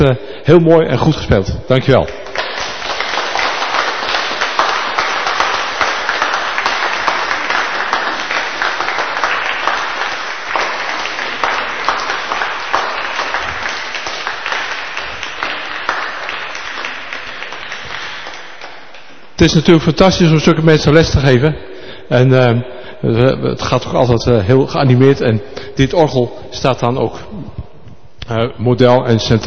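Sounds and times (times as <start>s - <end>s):
speech: 0.0s - 2.3s, 19.4s - 27.6s, 28.3s - 29.4s
audience applause: 2.2s - 19.4s.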